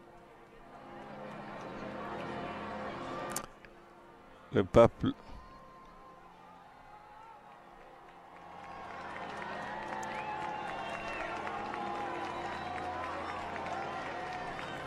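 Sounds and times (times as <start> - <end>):
crowd clapping: 0.7 - 2.9, 6.7 - 14.8
speech: 4.5 - 5.4
large crowd cheering and shouting: 5.3 - 14.8.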